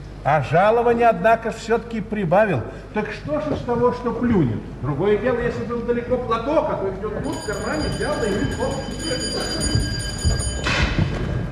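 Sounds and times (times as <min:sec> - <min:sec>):
speech: 0:00.2 - 0:10.0
electric doorbell ringing in a radio-play staging of the comedy Marriage: 0:07.2 - 0:11.1.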